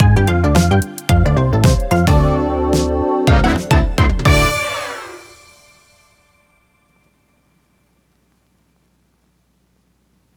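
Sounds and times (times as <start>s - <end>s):
end stinger: 1.3s - 6.8s.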